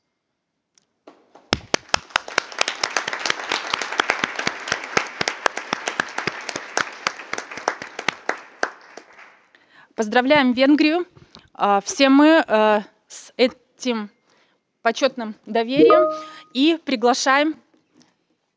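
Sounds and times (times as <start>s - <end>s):
applause at an international meeting approving a decision by acclamation: 1.6s - 9.6s
speech: 10.0s - 14.2s, 14.8s - 17.6s.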